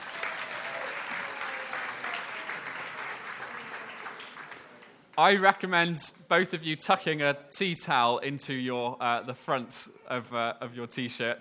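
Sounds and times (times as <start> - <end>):
audience applause: 0.0 - 5.2
speech: 5.2 - 11.3.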